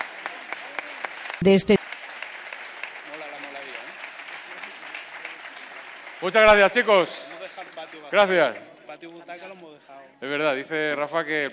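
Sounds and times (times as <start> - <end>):
audience applause: 0.0 - 8.8
speech: 1.4 - 1.8, 6.3 - 7.3, 8.1 - 11.5.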